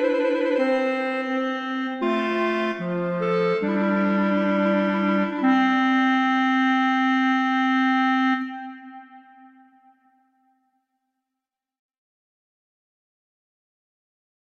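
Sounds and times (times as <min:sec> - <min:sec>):
larghetto piece: 0:00.0 - 0:09.6.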